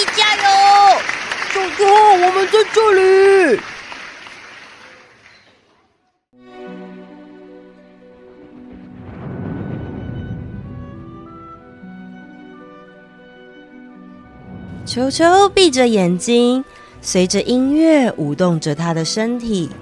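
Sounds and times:
applause: 0.0s - 5.7s
speech: 1.8s - 3.7s, 15.0s - 19.8s.

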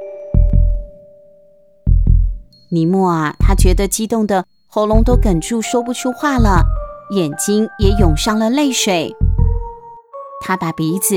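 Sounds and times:
thumping heartbeat: 0.4s - 1.0s, 1.9s - 2.6s, 3.4s - 5.5s, 6.4s - 7.1s, 7.8s - 8.4s, 9.1s - 9.8s
speech: 2.7s - 9.2s, 10.4s - 11.1s.

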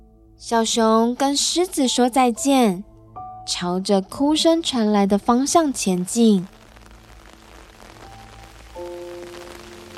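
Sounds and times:
speech: 0.4s - 2.9s, 3.5s - 6.6s
rain pattering on an umbrella: 5.2s - 9.9s.

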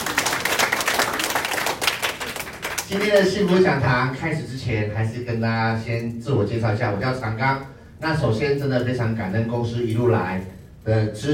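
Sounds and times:
audience applause: 0.0s - 2.9s
speech: 2.9s - 11.3s.

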